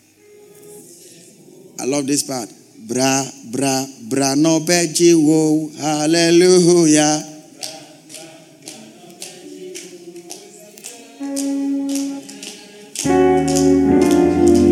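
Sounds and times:
singing and music: 0:00.0 - 0:01.9, 0:07.0 - 0:14.7
speech: 0:01.8 - 0:07.3
rhythmic hand claps: 0:07.6 - 0:14.7.

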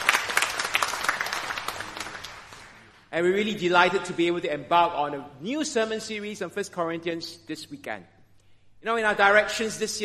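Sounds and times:
audience applauding: 0:00.0 - 0:02.9
speech: 0:03.1 - 0:08.2, 0:08.8 - 0:10.0.

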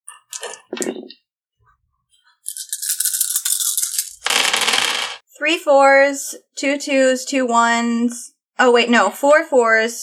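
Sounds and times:
dice being rolled: 0:02.5 - 0:05.2
speech: 0:05.4 - 0:10.0.

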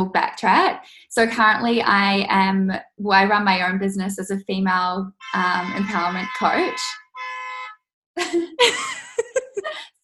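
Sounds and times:
speech: 0:00.0 - 0:07.0, 0:08.2 - 0:09.9
car horn honking: 0:05.2 - 0:07.9.

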